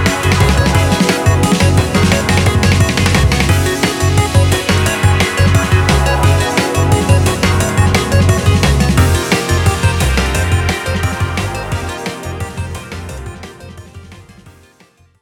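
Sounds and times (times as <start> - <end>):
urban background music: 0.0 - 15.2.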